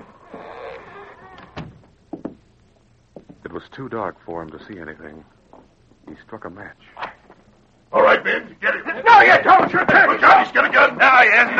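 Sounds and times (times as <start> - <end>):
door creaking open: 0.0 - 1.9
speech: 3.6 - 5.4, 6.2 - 7.0, 8.2 - 11.5.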